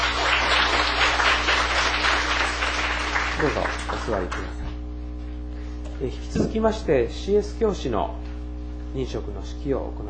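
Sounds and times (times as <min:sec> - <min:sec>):
church congregation applauding: 0:00.0 - 0:04.6
speech: 0:03.4 - 0:04.6, 0:06.0 - 0:08.2, 0:08.9 - 0:10.0
constant low hum: 0:04.7 - 0:09.0.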